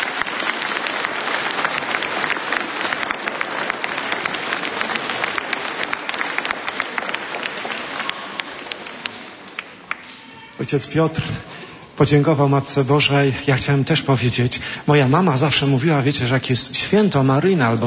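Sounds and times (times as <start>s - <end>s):
audience applause: 0.0s - 10.6s
speech: 10.6s - 17.8s.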